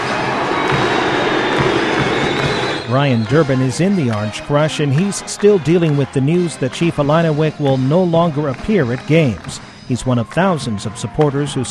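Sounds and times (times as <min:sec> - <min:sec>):
students cheering at a college basketball game: 0:00.0 - 0:11.7
speech: 0:02.9 - 0:11.7.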